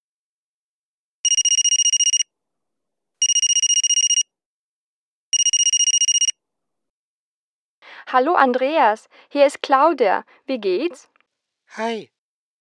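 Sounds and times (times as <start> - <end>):
telephone ringing: 1.2 - 2.2, 3.2 - 4.2, 5.4 - 6.3
speech: 8.1 - 11.1, 11.7 - 12.1.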